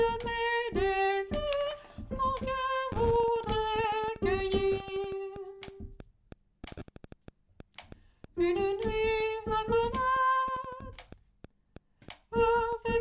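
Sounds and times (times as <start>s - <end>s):
soprano singing: 0.0s - 5.9s, 8.4s - 11.0s, 12.3s - 12.9s.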